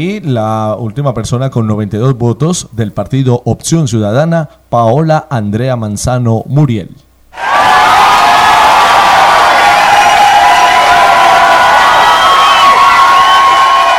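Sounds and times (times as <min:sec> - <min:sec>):
speech: 0:00.0 - 0:07.5
audience applause: 0:07.4 - 0:13.9.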